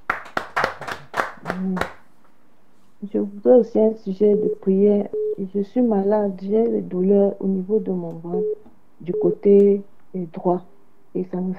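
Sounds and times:
church congregation clapping: 0:00.0 - 0:02.0
speech: 0:01.6 - 0:02.0, 0:03.0 - 0:11.5.

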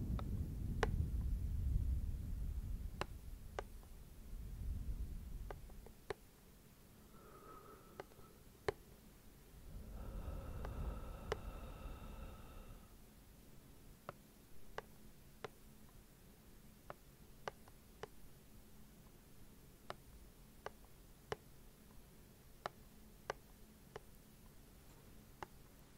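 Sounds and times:
faint hum: 0:00.0 - 0:25.9
slow rhythmic dry tapping clicks: 0:03.0 - 0:04.0, 0:05.4 - 0:06.3, 0:07.3 - 0:08.9, 0:10.0 - 0:12.0, 0:14.0 - 0:16.0, 0:16.8 - 0:18.3, 0:19.8 - 0:24.6
soft low breathing: 0:06.9 - 0:13.1.

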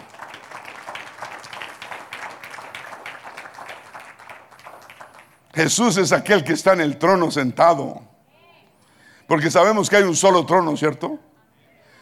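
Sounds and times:
audience applause: 0:00.0 - 0:05.4
speech: 0:05.6 - 0:08.1, 0:09.3 - 0:11.2.

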